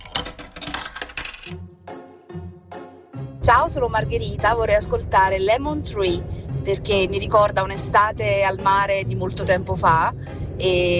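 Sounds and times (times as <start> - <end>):
coin dropping into jukebox: 0.0 - 1.6
speech: 3.4 - 10.9.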